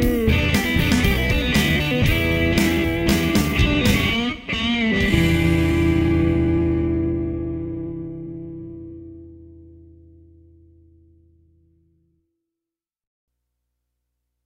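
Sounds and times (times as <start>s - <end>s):
slow hard rock music: 0.0s - 9.8s.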